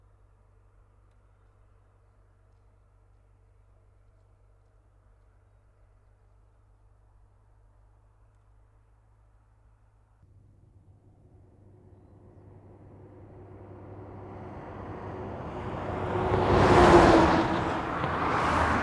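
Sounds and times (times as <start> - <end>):
passing traffic on a country road: 10.4 - 18.8.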